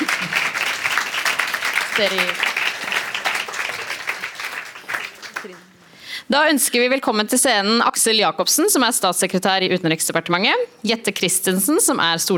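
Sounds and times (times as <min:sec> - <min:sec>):
applause: 0:00.0 - 0:05.8
speech: 0:02.0 - 0:02.5, 0:05.4 - 0:12.3.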